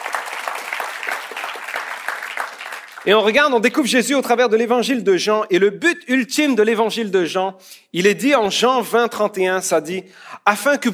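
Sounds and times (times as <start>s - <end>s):
church congregation clapping during a French-language service: 0.0s - 3.6s
speech: 3.0s - 10.9s.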